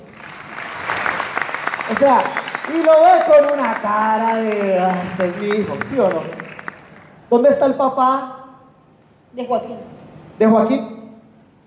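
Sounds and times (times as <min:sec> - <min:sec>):
audience applause: 0:00.0 - 0:07.2
speech: 0:01.9 - 0:06.4, 0:07.3 - 0:08.4, 0:09.3 - 0:10.9.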